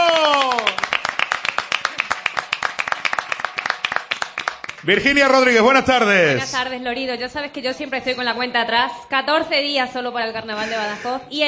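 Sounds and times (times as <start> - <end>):
audience applause: 0.0 - 6.3
speech: 4.8 - 11.4.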